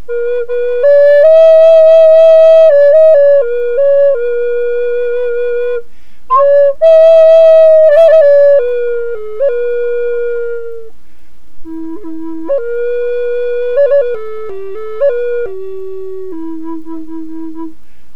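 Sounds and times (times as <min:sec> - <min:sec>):
Tulip flutes in E with 1 bore: 0:00.0 - 0:11.0, 0:11.6 - 0:18.0.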